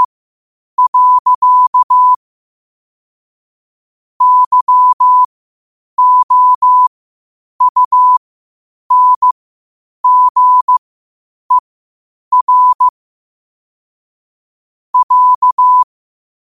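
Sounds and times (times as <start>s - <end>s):
morse code at 5 wpm: 0.8s - 2.2s, 4.2s - 5.3s, 6.0s - 6.9s, 7.6s - 8.2s, 8.9s - 9.4s, 10.0s - 10.8s, 12.3s - 12.9s, 15.0s - 15.9s.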